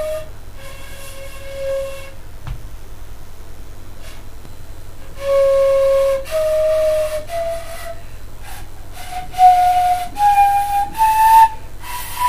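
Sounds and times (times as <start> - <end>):
PVC flute playing: 0.0 - 2.2, 5.0 - 12.2.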